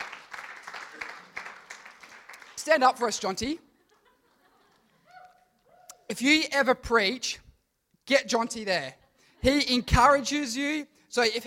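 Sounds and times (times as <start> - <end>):
audience clapping: 0.0 - 4.0
speech: 2.6 - 3.7, 6.2 - 7.4, 8.1 - 11.4
laughter: 3.6 - 5.6.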